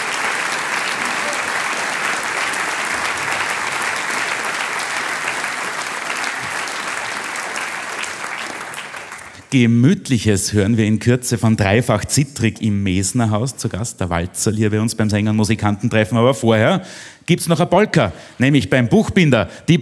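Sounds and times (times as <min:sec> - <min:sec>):
audience applause: 0:00.0 - 0:09.5
speech: 0:09.5 - 0:19.8.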